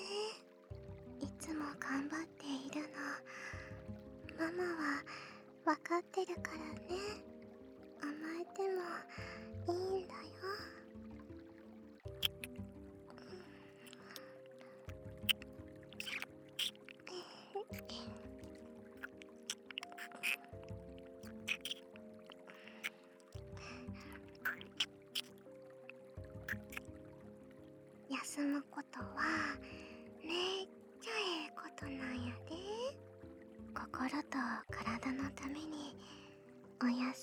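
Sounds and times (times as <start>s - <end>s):
background music: 0.0s - 37.2s
gentle kissing while lying beside someone: 12.1s - 12.6s, 13.8s - 17.1s, 17.7s - 18.2s, 19.0s - 20.6s, 21.2s - 23.0s, 24.0s - 27.0s.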